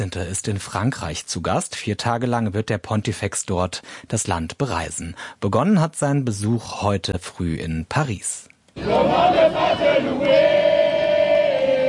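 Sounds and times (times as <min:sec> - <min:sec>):
speech: 0:00.0 - 0:10.5
children and teenagers singing at Paris-Orly airport: 0:08.8 - 0:11.8.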